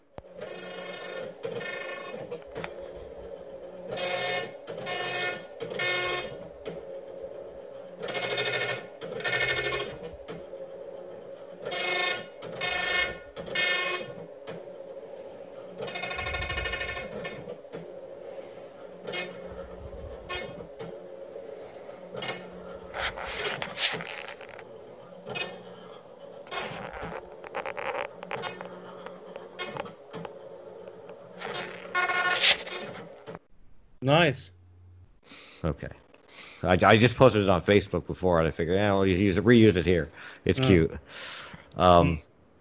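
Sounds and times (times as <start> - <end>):
printer mechanical hum: 0.0 - 42.6
printer print head buzzing bursts: 0.2 - 33.4
speech: 34.1 - 34.5, 35.6 - 36.0, 36.6 - 41.1, 41.8 - 42.3.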